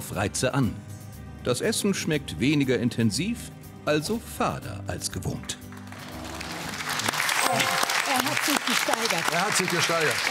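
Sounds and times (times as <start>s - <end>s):
speech: 0.1s - 5.6s, 8.5s - 10.2s
audience applause: 5.8s - 10.2s.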